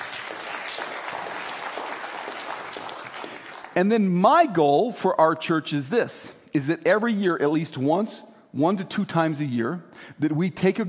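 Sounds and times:
audience clapping: 0.0 - 4.1
speech: 3.8 - 10.8.

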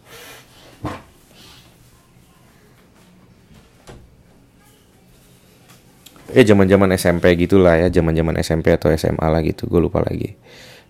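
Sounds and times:
door being closed: 3.8 - 4.2
speech: 6.3 - 10.8.

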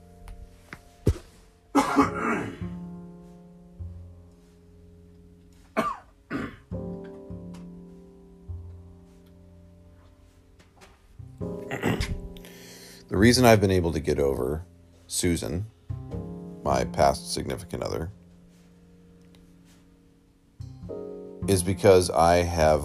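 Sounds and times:
person coughing during an allergy fit: 1.7 - 2.7, 5.7 - 6.6, 11.7 - 12.2
throat clearing: 1.8 - 2.7, 5.7 - 6.6, 11.7 - 12.2
speech: 1.9 - 2.3, 13.1 - 15.8, 16.7 - 18.2, 21.5 - 22.8.

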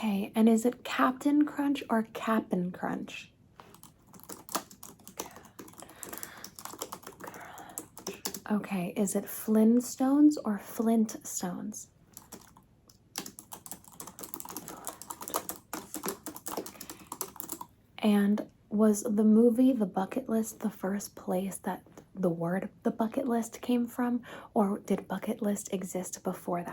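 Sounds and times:
speech: 0.0 - 3.3, 8.5 - 11.9, 18.0 - 26.7
typing on a keyboard: 3.7 - 8.5, 12.2 - 17.7.

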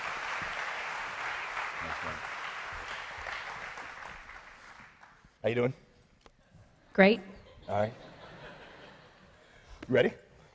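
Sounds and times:
audience applause at a church campus welcoming the pastor's wife to the stage: 0.0 - 5.2
speech: 1.8 - 2.3, 5.4 - 5.9, 7.0 - 8.1, 9.9 - 10.2
laughter: 7.4 - 9.6.

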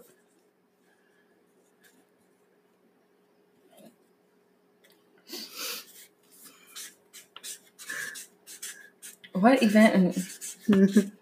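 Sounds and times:
pen drawing a line on paper: 6.7 - 11.1
speech: 9.4 - 11.1.

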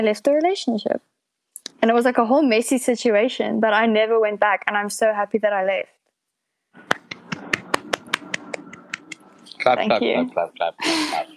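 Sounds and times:
speech: 0.0 - 1.1, 1.8 - 6.0, 9.6 - 11.3
hand clap: 6.8 - 9.2.

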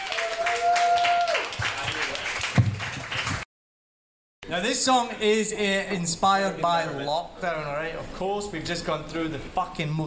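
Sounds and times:
audience applause: 0.0 - 3.4
speech: 4.5 - 10.0.

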